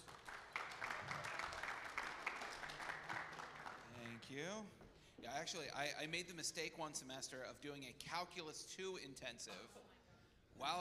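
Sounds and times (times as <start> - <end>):
audience applause: 0.0 - 4.5
speech: 4.2 - 10.0, 10.6 - 10.7.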